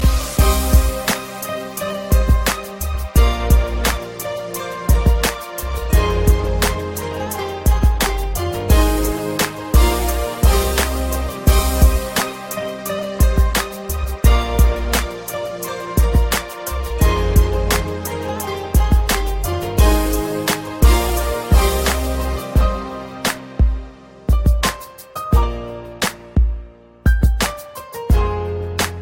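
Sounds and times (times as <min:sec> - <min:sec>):
sad love music: 0:00.0 - 0:29.0.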